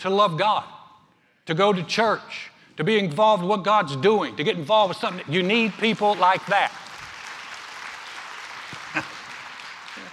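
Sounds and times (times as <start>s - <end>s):
speech: 0.0s - 0.8s, 1.5s - 6.9s
golf clap from a small crowd: 5.0s - 10.1s.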